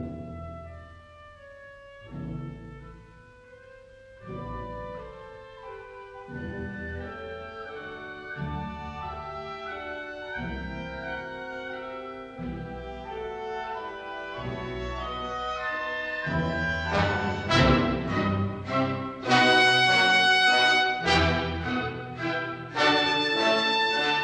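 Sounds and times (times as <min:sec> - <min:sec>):
symphony in E minor allegro movement: 0:00.0 - 0:24.2.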